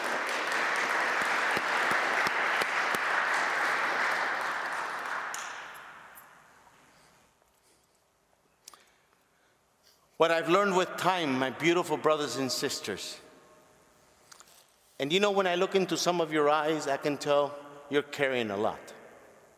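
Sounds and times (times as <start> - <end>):
congregation applauding at a Lenten mission in a church: 0.0 - 6.2
speech: 10.2 - 13.2, 15.0 - 19.0.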